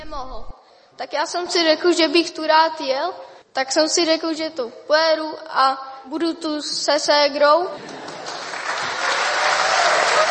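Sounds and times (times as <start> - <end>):
speech: 0.1 - 8.1
audience applauding a young speaker: 7.8 - 10.2.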